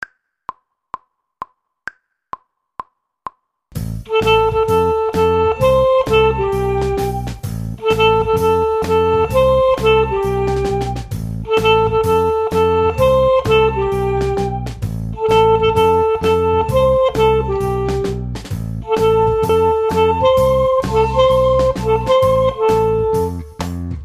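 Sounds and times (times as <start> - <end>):
clarinet: 4.0 - 23.8.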